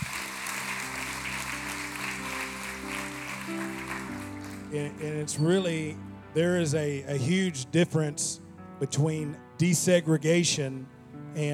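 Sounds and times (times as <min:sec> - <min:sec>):
audience clapping: 0:00.0 - 0:05.7
speech: 0:04.7 - 0:11.5.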